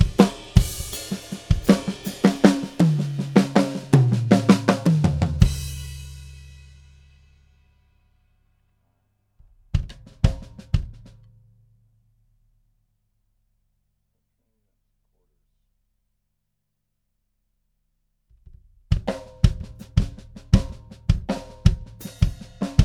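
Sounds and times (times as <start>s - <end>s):
drum test: 0.0s - 7.4s, 9.6s - 11.2s, 18.8s - 22.8s.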